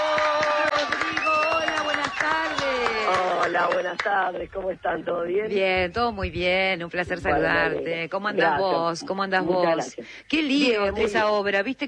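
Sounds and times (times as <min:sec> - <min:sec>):
studio audience applause welcoming a guest: 0:00.0 - 0:04.3
speech: 0:03.5 - 0:11.8.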